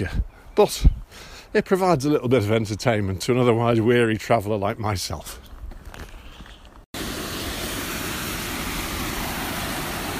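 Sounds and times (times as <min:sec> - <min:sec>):
speech: 0:00.0 - 0:05.5
small waterfall: 0:07.0 - 0:10.1.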